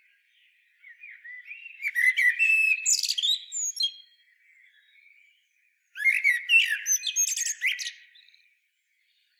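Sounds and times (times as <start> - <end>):
common blackbird song: 0.0 - 9.3.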